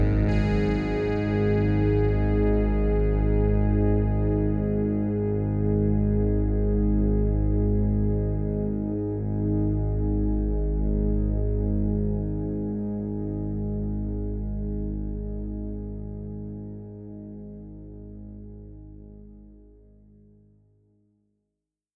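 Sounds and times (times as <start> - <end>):
SUPER6 polyphonic synthesizer: 0.0 - 20.3.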